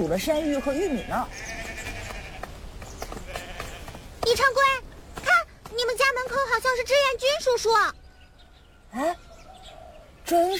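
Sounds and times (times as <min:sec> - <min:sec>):
speech: 0:00.0 - 0:01.7, 0:04.3 - 0:04.9, 0:05.7 - 0:08.0, 0:08.9 - 0:09.2, 0:10.3 - 0:10.5
flock of sheep bleating as children drive it home: 0:00.3 - 0:04.2
steady rustling background: 0:00.4 - 0:07.0.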